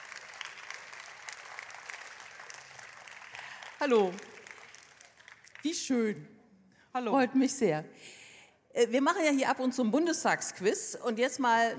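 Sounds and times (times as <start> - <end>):
audience applause: 0.0 - 5.6
speech: 3.8 - 4.3, 5.6 - 8.2, 8.8 - 11.7.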